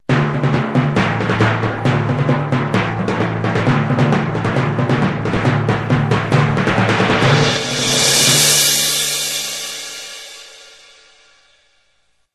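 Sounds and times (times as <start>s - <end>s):
timpani: 0.0s - 11.6s.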